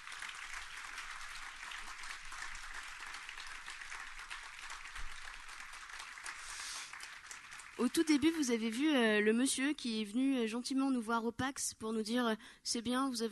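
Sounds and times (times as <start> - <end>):
audience applause: 0.0 - 8.4
speech: 7.8 - 13.2.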